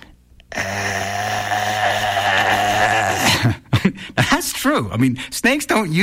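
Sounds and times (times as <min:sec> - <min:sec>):
human voice imitating a snake with a raspy drone: 0:00.5 - 0:03.4
speech: 0:04.6 - 0:06.0.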